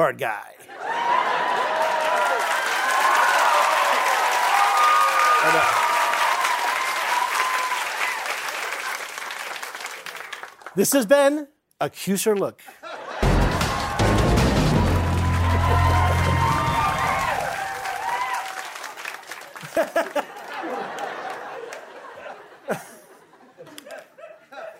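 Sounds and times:
speech: 0:00.0 - 0:01.2, 0:05.4 - 0:05.8, 0:10.8 - 0:12.8
laughter: 0:00.7 - 0:02.5, 0:12.7 - 0:14.0, 0:19.4 - 0:24.7
crowd cheering: 0:00.7 - 0:10.7, 0:12.9 - 0:22.8
loud audience applause: 0:00.8 - 0:10.8, 0:13.2 - 0:22.8.

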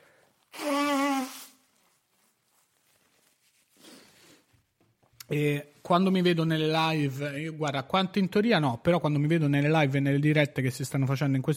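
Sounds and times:
nose blowing: 0:00.0 - 0:01.8
speech: 0:05.3 - 0:11.5.

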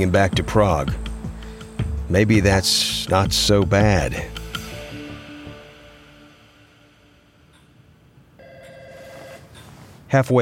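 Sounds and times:
speech: 0:00.0 - 0:01.0, 0:02.1 - 0:04.4, 0:10.1 - 0:10.3
telephone ringing with a warbling electronic tone: 0:08.4 - 0:09.6.

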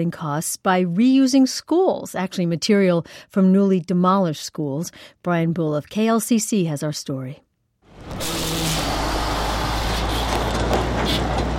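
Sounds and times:
speech: 0:00.0 - 0:07.5
dump truck rolling through a gate: 0:07.9 - 0:11.5.

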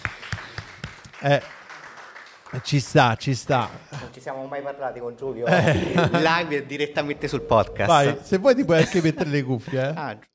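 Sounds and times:
sparse hand claps: 0:00.0 - 0:02.8
speech: 0:01.2 - 0:01.6, 0:02.5 - 0:10.3
laughter: 0:05.4 - 0:06.4, 0:08.6 - 0:10.0.

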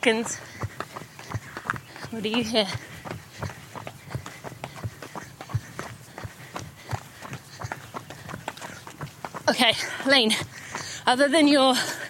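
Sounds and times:
speech: 0:00.0 - 0:00.7, 0:02.1 - 0:03.5, 0:09.5 - 0:10.5, 0:11.1 - 0:12.0
footsteps while walking: 0:00.0 - 0:12.0.

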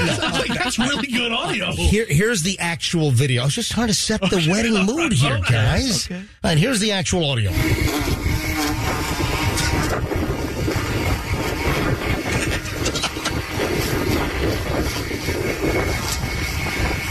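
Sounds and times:
weed whacker running outdoors: 0:00.0 - 0:01.7, 0:07.5 - 0:17.0
laughter: 0:00.0 - 0:02.2, 0:03.7 - 0:06.2
speech: 0:00.2 - 0:08.2.

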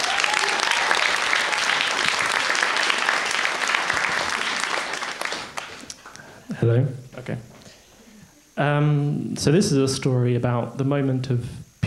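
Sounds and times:
crowd round of applause: 0:00.0 - 0:06.3
speech: 0:06.6 - 0:07.5, 0:08.6 - 0:11.6.

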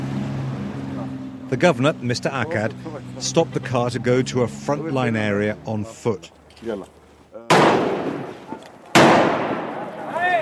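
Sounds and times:
speech: 0:01.5 - 0:07.0
outgoing artillery fire: 0:07.5 - 0:10.1.

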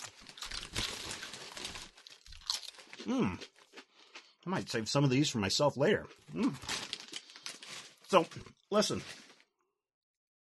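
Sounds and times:
bag of chips crinkling: 0:00.0 - 0:04.2, 0:06.0 - 0:09.6
speech: 0:03.1 - 0:03.6, 0:04.4 - 0:06.9, 0:08.1 - 0:09.2.

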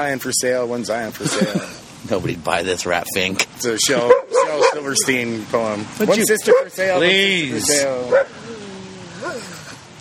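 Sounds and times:
speech: 0:00.0 - 0:08.4
laughter: 0:01.0 - 0:02.2, 0:03.6 - 0:04.3, 0:09.1 - 0:09.9
dog long whining bark: 0:04.0 - 0:04.9, 0:08.1 - 0:08.4.

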